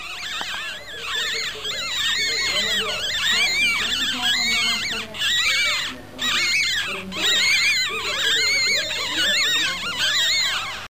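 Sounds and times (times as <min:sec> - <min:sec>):
ferret: 0:00.0 - 0:10.9.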